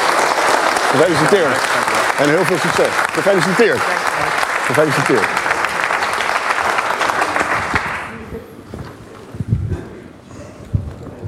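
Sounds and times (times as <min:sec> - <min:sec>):
audience applause: 0:00.0 - 0:08.3
speech: 0:00.9 - 0:05.6.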